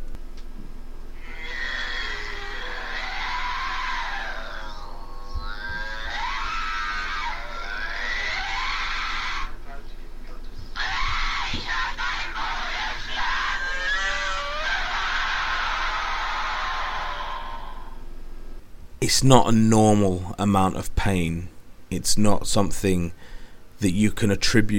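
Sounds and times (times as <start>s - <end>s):
woman howling and crying in pain: 1.2s - 9.6s, 10.8s - 18.0s
speech: 19.1s - 24.7s.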